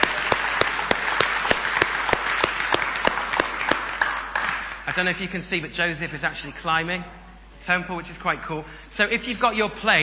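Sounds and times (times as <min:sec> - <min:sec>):
crowd applauding: 0:00.0 - 0:05.2
speech: 0:04.9 - 0:10.0.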